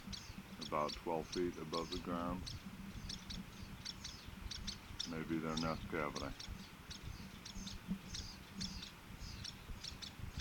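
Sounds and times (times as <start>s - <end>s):
adult bird alarm chip notes: 0.2s - 10.3s
speech: 0.7s - 2.7s, 5.1s - 6.6s.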